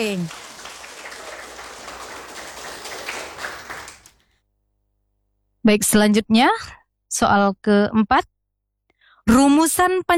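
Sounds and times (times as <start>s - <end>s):
speech: 0.0s - 0.4s, 5.6s - 8.3s, 9.3s - 10.1s
audience clapping to cheer a team at a quiz contest: 0.0s - 4.2s.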